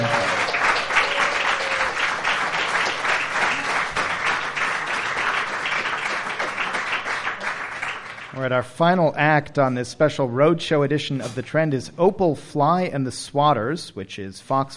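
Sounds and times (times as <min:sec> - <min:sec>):
audience applause: 0:00.0 - 0:08.5
speech: 0:08.5 - 0:14.7.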